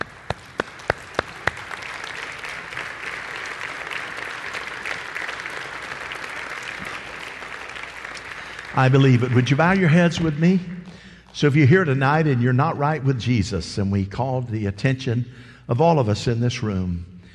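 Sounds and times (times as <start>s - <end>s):
audience clapping: 0.0s - 10.6s
speech: 8.8s - 10.8s, 11.4s - 17.1s.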